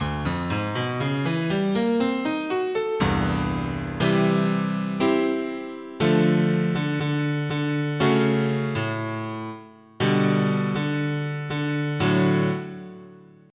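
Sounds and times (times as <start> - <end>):
piano: 0.0 - 13.5.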